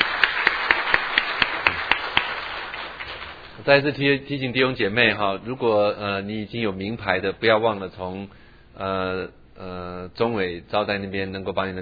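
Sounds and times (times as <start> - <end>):
audience applauding to welcome a family: 0.0 - 3.6
pair of hands clapping a steady rhythm: 0.0 - 3.6
speech: 3.6 - 11.7.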